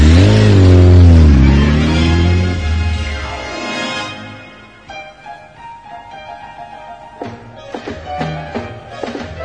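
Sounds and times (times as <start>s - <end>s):
motorcycle engine revving: 0.0s - 3.6s.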